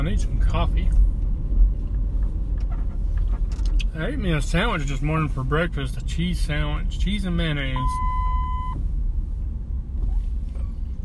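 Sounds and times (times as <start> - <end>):
speech: 0.0 - 1.7, 3.9 - 8.8
Jeep low engine rumble: 0.0 - 11.0
Jeep sensor electronic warning beep: 7.8 - 8.8.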